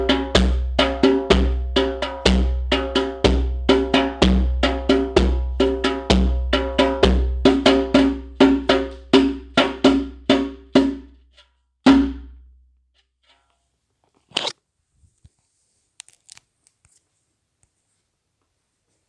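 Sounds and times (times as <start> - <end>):
djembe accompaniment: 0.0 - 11.3, 11.9 - 12.4.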